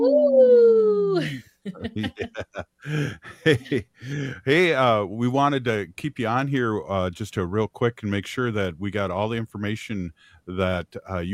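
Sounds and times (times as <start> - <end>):
person imitating wolf howl: 0.0 - 1.2
laughter: 1.2 - 5.0
speech: 1.7 - 11.3.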